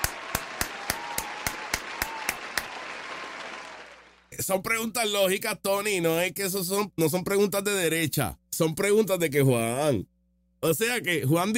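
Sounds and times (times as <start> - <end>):
single pair of hands clapping: 0.0 - 4.3
speech: 4.4 - 11.5.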